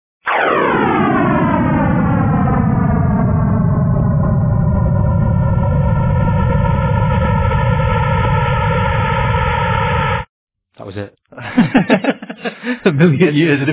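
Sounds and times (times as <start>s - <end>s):
rumbling noise: 0.3s - 10.3s
sonified early universe descending roaring drone: 0.3s - 10.3s
laughter: 11.4s - 13.7s
speech: 12.9s - 13.7s.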